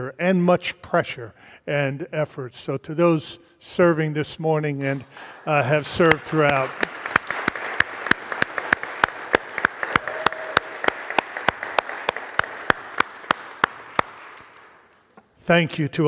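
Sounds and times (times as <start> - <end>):
speech: 0.0 - 7.0, 15.5 - 16.0
audience applause: 5.3 - 14.9.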